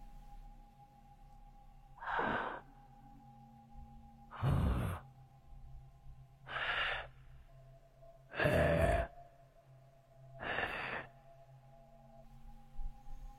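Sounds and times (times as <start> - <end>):
low steady hum: 0.0 - 13.3
rasping wheezing breaths from three huddled people: 2.0 - 2.8, 4.3 - 5.2, 6.4 - 7.6, 8.2 - 9.2, 10.3 - 11.3.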